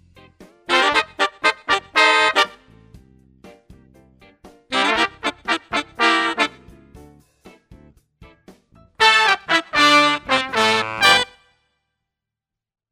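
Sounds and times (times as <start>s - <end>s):
horns: 0.7s - 2.7s, 4.7s - 6.7s, 9.0s - 11.5s.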